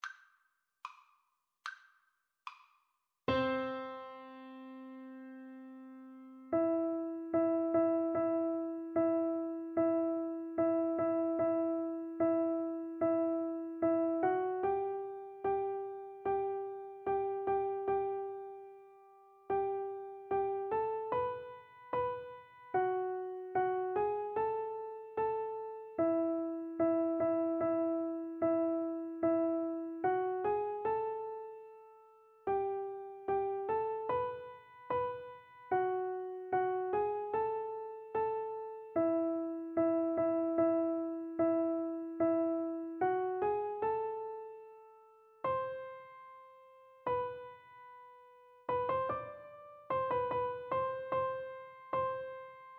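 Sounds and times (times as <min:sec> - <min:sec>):
piano duet: 0:03.3 - 0:52.7.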